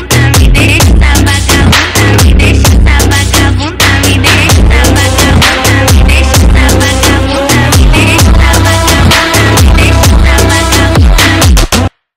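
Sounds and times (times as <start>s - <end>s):
Brazilian phonk music: 0.0s - 12.0s.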